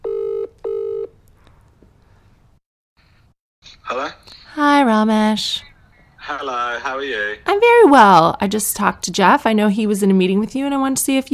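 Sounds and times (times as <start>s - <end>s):
telephone call ringing: 0.0s - 1.1s
speech: 3.9s - 5.7s, 6.3s - 11.3s.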